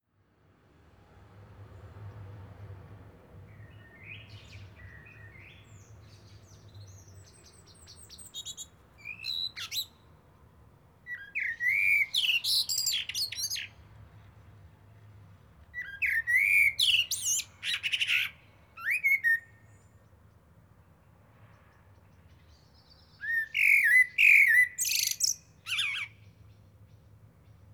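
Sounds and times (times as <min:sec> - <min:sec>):
common blackbird singing: 0:03.5 - 0:10.1, 0:11.1 - 0:13.8, 0:15.8 - 0:20.4, 0:21.6 - 0:27.7.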